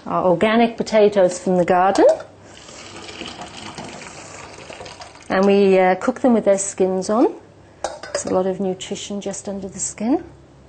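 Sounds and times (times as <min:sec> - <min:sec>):
speech: 0:00.0 - 0:02.3, 0:05.3 - 0:07.4, 0:08.2 - 0:10.4
water pouring as cooked organic garden potatoes are drained: 0:02.5 - 0:05.6.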